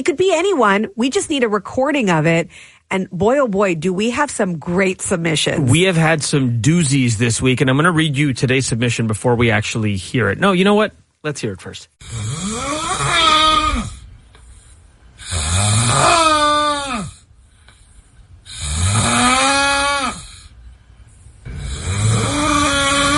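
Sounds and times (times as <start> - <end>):
speech: 0.0 - 12.7
man snoring loudly: 12.0 - 14.1, 15.2 - 17.3, 18.4 - 20.6, 21.4 - 23.1
quiet breaths: 14.0 - 15.2, 17.2 - 18.5.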